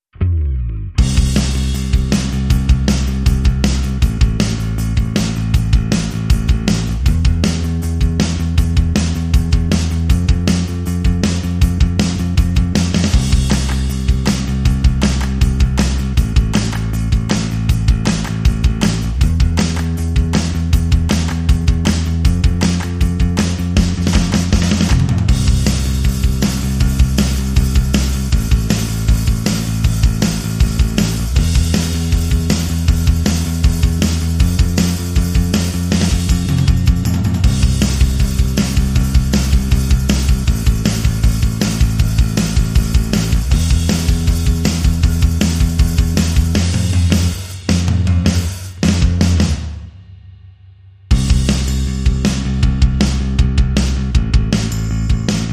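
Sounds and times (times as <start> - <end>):
bass: 0.0 - 55.5
drums: 0.0 - 55.5.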